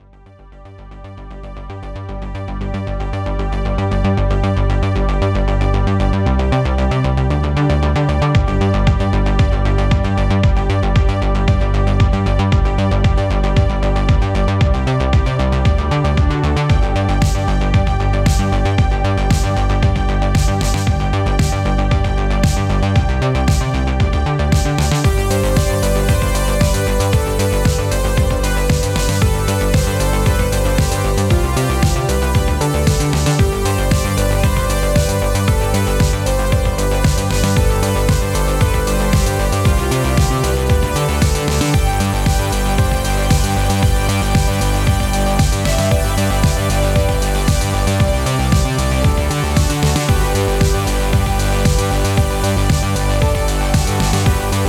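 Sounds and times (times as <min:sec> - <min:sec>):
instrumental music: 0:00.8 - 0:54.6.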